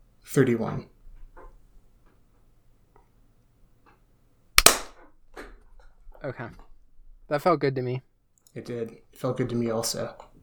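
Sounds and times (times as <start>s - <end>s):
speech: 0.3s - 0.9s, 6.2s - 6.7s, 7.3s - 10.3s
single hand clap for sync: 4.6s - 4.9s.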